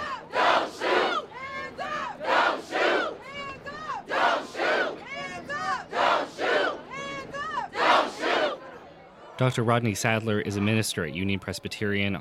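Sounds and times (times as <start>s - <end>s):
protest crowd shouting chants: 0.0s - 9.4s
speech: 9.4s - 12.2s.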